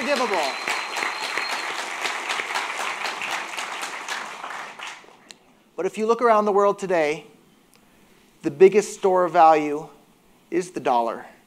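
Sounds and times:
audience applause: 0.0s - 5.2s
speech: 0.1s - 0.7s, 5.8s - 7.3s, 8.4s - 11.3s.

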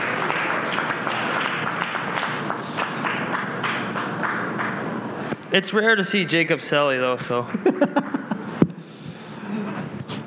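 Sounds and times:
audience applause: 0.0s - 5.2s
speech: 5.5s - 8.2s
laughter: 7.4s - 8.6s.

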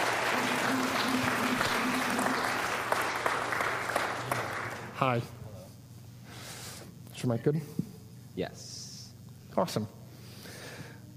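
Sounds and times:
audience applause welcoming a guest on stage: 0.0s - 5.0s
speech: 5.0s - 5.4s, 7.2s - 8.8s, 9.6s - 10.0s.

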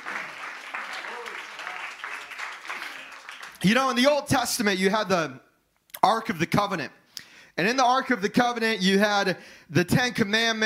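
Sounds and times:
audience clapping in praise: 0.0s - 4.2s
speech: 3.6s - 7.0s, 7.6s - 10.6s.

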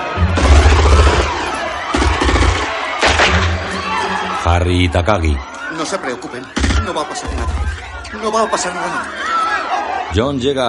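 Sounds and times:
people shouting: 0.0s - 10.1s
crowd commotion: 0.0s - 10.6s
gunshots fired into the air by armed assailants in a hall in Die Hard: 0.2s - 4.4s, 6.5s - 7.7s
speech: 4.6s - 9.4s, 10.1s - 10.6s.

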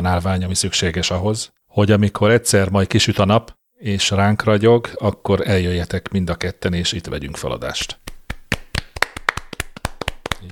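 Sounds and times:
speech: 0.0s - 8.1s
hand clapping applause: 7.8s - 10.5s.

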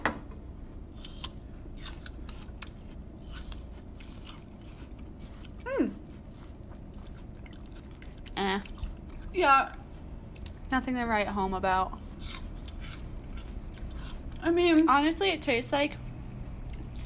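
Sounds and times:
crunching and chewing of salt and pepper apple slices: 0.8s - 10.7s, 11.9s - 15.1s
speech: 9.4s - 9.8s, 10.7s - 12.0s, 14.5s - 16.0s.

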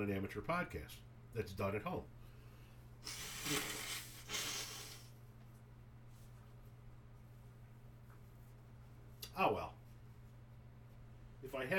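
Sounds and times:
speech: 0.0s - 2.2s, 3.0s - 3.9s, 11.6s - 11.7s
low steady hum: 0.0s - 11.7s
person blowing nose: 3.0s - 5.2s.

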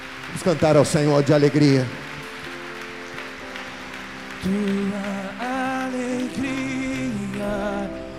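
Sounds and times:
audience applauding: 0.0s - 8.0s
speech: 0.3s - 2.1s, 4.4s - 5.2s.

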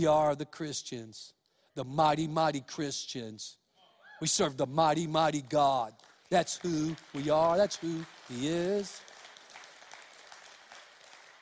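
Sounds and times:
speech: 0.0s - 3.6s, 4.2s - 9.1s
audience clapping: 5.3s - 11.4s.

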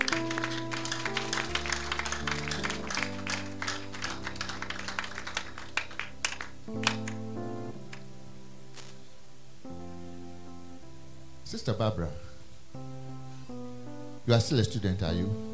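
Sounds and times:
audience clapping: 0.0s - 8.0s
speech: 11.6s - 12.3s, 14.3s - 15.5s.

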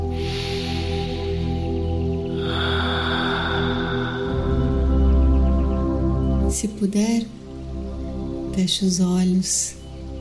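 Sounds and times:
deep breath drawn during a calming exercise: 0.0s - 5.4s
soft droning music: 0.0s - 10.1s
speech: 6.6s - 7.4s, 8.6s - 9.8s.

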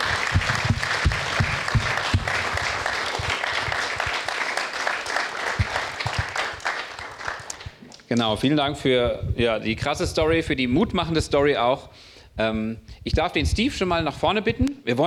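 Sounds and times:
audience applause: 0.0s - 7.9s
speech: 8.1s - 15.0s.

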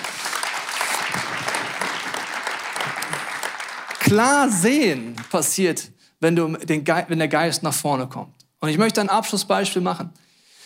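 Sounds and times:
audience applause: 0.0s - 5.6s
speech: 4.1s - 10.2s.

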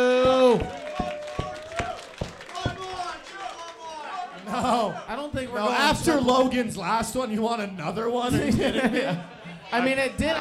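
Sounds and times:
audience clapping hands in a steady rhythm: 0.2s - 4.0s
laughter: 4.3s - 5.1s, 8.2s - 10.3s
speech: 5.9s - 10.3s.

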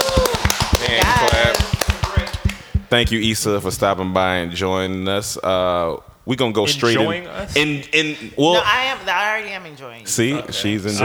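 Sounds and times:
hand clapping for a guest: 0.0s - 4.0s
speech: 2.9s - 11.0s.

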